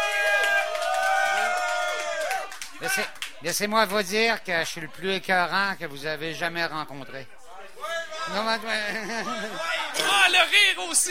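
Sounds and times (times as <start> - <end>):
crowd at an evening radiothon cheering and whooping: 0.0 - 2.5
crowd at an evening radiothon clapping: 0.0 - 4.1
speech: 2.8 - 7.4, 8.3 - 11.0
laughter: 8.3 - 10.4.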